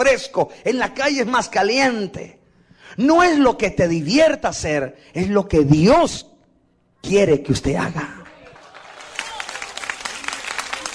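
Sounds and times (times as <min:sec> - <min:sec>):
speech: 0:00.1 - 0:06.3, 0:07.0 - 0:08.2
audience applauding: 0:08.1 - 0:10.9.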